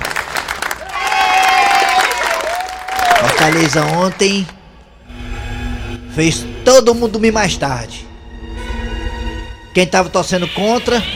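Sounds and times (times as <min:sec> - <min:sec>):
crowd applauding: 0:00.0 - 0:04.6
speech: 0:03.4 - 0:04.6, 0:06.2 - 0:08.1, 0:09.8 - 0:11.1.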